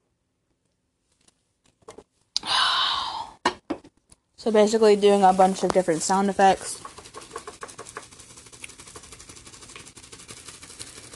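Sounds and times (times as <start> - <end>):
speech: 4.4 - 6.9
plastic bag blowing in the wind: 4.4 - 11.1.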